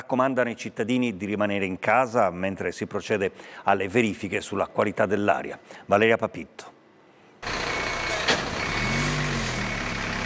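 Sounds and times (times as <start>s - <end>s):
speech: 0.1s - 6.8s
fire engine air brakes hissing: 7.4s - 10.1s
heavy fire engine rumbling and revving: 7.4s - 10.2s.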